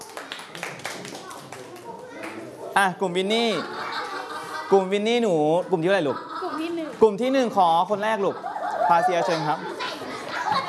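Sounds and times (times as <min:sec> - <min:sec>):
children clapping in a classroom: 0:00.0 - 0:02.5
children chattering: 0:00.0 - 0:10.6
speech: 0:02.8 - 0:03.8, 0:04.7 - 0:06.3, 0:07.0 - 0:09.8
laughter: 0:03.4 - 0:10.6.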